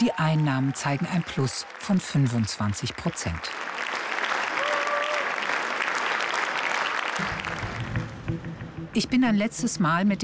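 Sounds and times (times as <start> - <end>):
speech: 0.0 - 3.8, 9.0 - 10.2
audience applause: 0.0 - 8.2.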